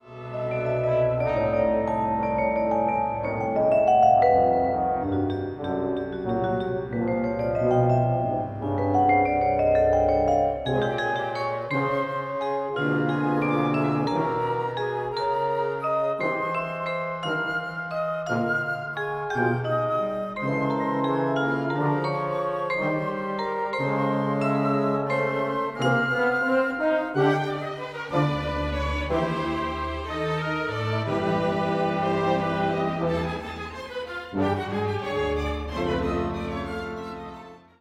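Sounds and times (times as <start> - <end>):
orchestra: 0.0 - 37.7.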